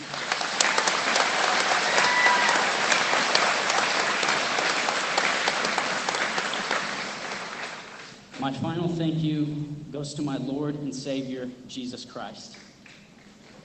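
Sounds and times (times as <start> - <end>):
audience applause: 0.0 - 8.4
speech: 8.4 - 12.7.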